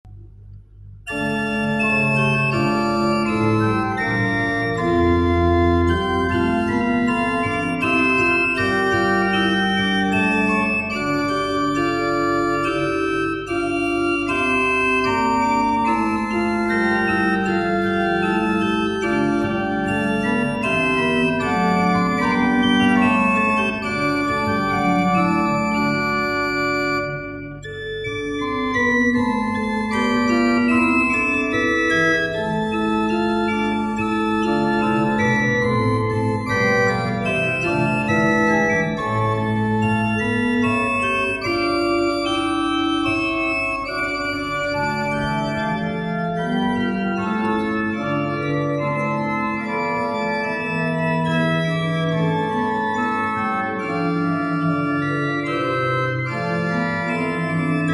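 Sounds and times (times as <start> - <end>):
Becker pipe organ: 0.2 - 57.9.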